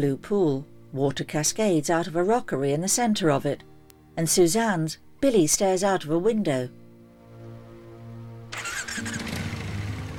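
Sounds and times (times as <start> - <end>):
speech: 0.0 - 6.8, 9.0 - 9.2
motorcycle engine running: 8.6 - 10.1.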